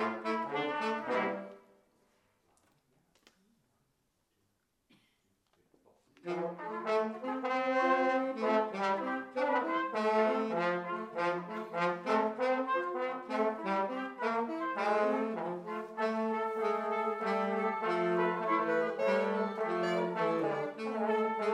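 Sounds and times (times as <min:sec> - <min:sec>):
junior brass ensemble playing variations on a folk song: 0:00.0 - 0:01.7, 0:06.2 - 0:21.5.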